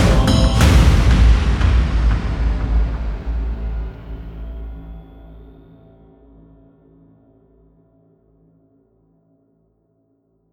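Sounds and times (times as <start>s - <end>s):
automotive cinematic opener music: 0.0s - 5.3s.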